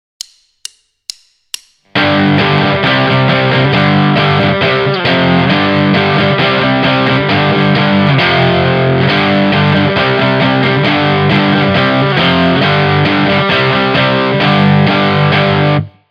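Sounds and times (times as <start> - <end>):
rhythm guitar with alternate picking: 0.2 - 15.9.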